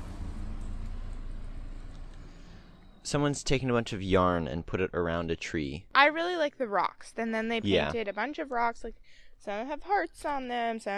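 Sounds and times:
car driving past: 0:00.0 - 0:03.7
speech: 0:03.1 - 0:10.9.

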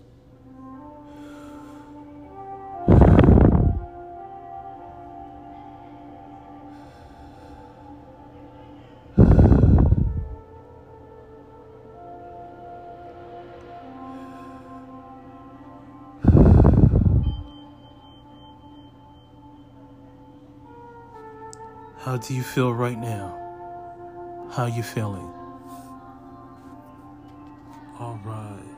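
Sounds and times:
deep breathing during a yoga breathing exercise: 0:00.9 - 0:02.1, 0:02.9 - 0:03.9, 0:06.6 - 0:08.2, 0:09.0 - 0:10.5, 0:16.1 - 0:17.5
speech: 0:22.1 - 0:23.4, 0:24.6 - 0:25.4.

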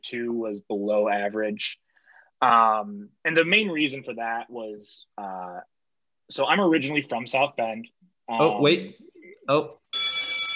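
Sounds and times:
speech: 0:00.0 - 0:01.8, 0:02.4 - 0:05.7, 0:06.3 - 0:09.8
school bell ringing: 0:10.0 - 0:10.5.

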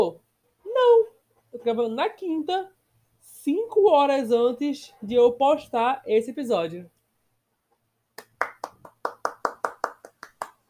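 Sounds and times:
speech: 0:00.0 - 0:00.2, 0:01.6 - 0:07.0
hand clapping: 0:08.2 - 0:10.6.

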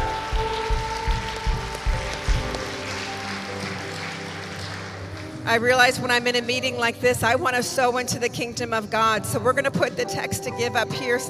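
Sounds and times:
audience applause: 0:00.0 - 0:06.0
speech: 0:05.5 - 0:11.2.

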